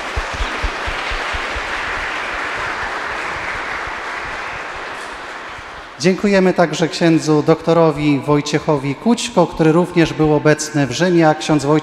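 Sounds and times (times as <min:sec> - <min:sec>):
audience applause: 0:00.0 - 0:06.0
speech: 0:06.0 - 0:11.8.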